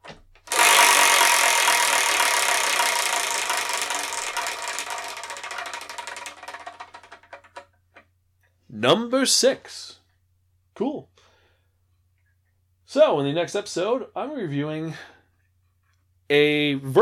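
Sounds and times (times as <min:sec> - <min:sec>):
Wheel of Manga prize wheel spinning: 0:00.4 - 0:07.7
speech: 0:08.8 - 0:10.0, 0:12.9 - 0:15.1, 0:16.3 - 0:17.0.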